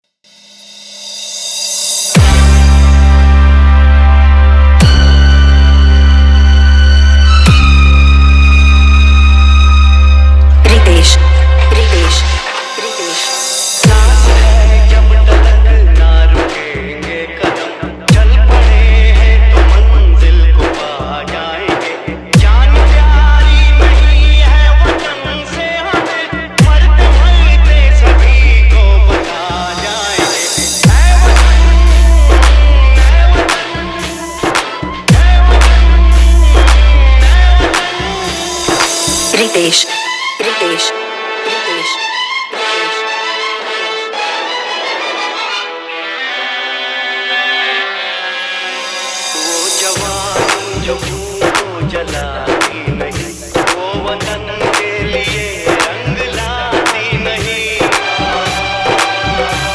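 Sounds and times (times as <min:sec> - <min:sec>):
patriotic dj remix song: 0:02.1 - 0:59.7.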